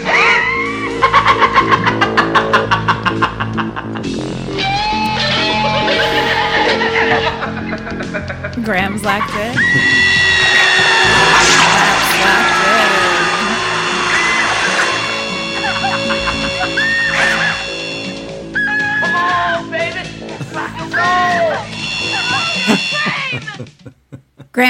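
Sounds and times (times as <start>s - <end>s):
screaming: 0.0s - 1.0s, 9.6s - 19.6s, 20.9s - 23.4s
maniacal laughter: 0.0s - 8.6s, 9.6s - 18.1s, 20.2s - 24.5s
horror-film guitar drill buzzing electric whines: 0.7s - 23.5s
speech: 8.7s - 10.3s.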